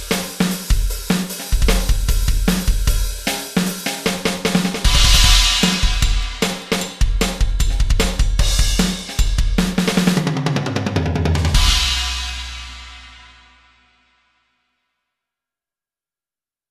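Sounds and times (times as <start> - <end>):
TD20 drum kit pattern: 0.0 - 13.3.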